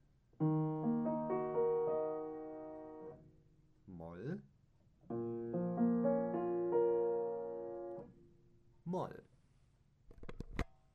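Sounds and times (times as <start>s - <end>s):
major and minor music: 0.4s - 3.2s, 5.1s - 8.1s.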